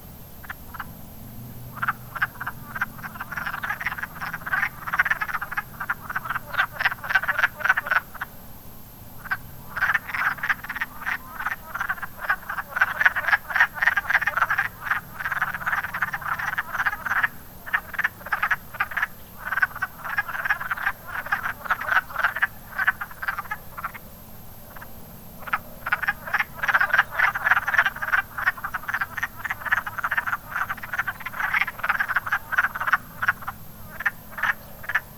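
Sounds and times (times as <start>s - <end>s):
faint hiss: 0.0s - 35.1s
wood frogs croaking: 0.0s - 35.1s.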